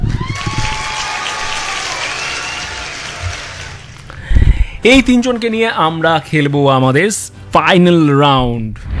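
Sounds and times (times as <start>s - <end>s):
quiz-show audience applauding three finalists: 0.2s - 4.0s, 5.0s - 6.5s
speech: 4.8s - 8.9s.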